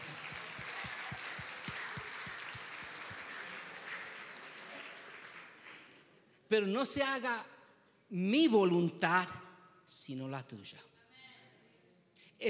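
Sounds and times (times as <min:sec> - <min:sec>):
audience applause: 0:00.0 - 0:05.9
speech: 0:06.5 - 0:07.5, 0:08.1 - 0:10.9.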